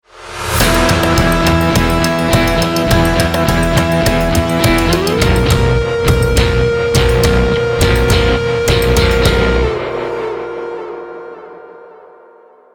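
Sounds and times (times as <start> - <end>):
ten second bomb timer countdown: 0.6 - 10.2.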